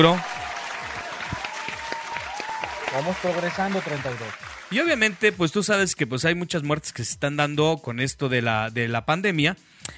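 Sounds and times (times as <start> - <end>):
speech: 0.0 - 0.3, 2.9 - 9.9
applause: 0.0 - 5.9.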